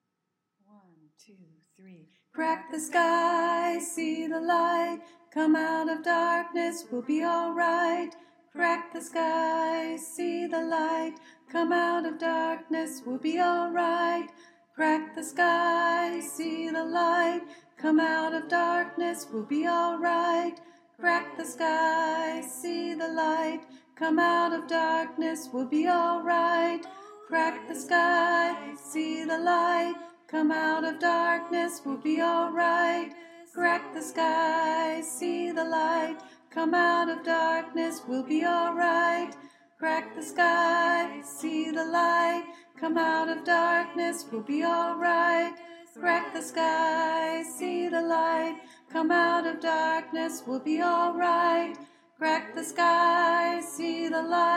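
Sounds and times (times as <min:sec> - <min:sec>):
choir with soprano: 0:02.4 - 0:54.5.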